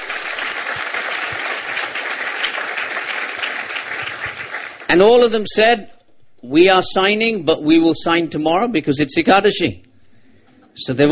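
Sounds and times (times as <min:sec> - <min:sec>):
audience applause: 0:00.0 - 0:05.0
speech: 0:04.9 - 0:09.9, 0:10.8 - 0:11.0.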